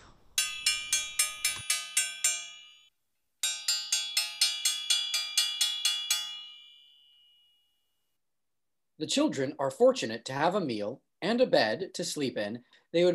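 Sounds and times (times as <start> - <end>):
hand bell rung slowly by hand: 0.4 - 7.6
speech: 9.0 - 13.1.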